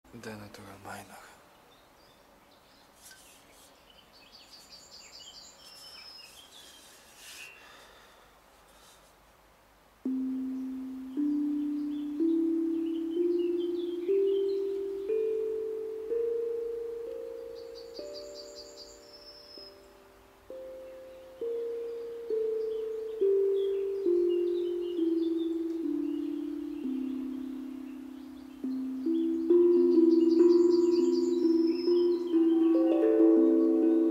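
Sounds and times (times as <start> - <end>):
D natural minor scale: 10.0 - 34.0.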